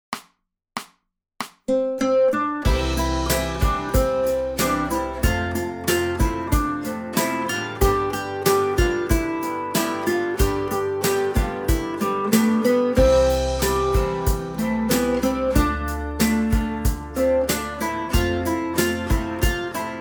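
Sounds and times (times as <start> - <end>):
guitar melody from a guitar method: 1.7 - 19.9.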